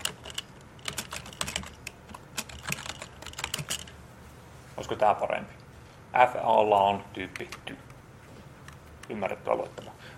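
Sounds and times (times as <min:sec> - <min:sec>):
code typed on a computer keyboard during a programming demonstration: 0:00.0 - 0:03.9
speech: 0:04.8 - 0:05.6, 0:06.2 - 0:07.9, 0:09.1 - 0:10.1.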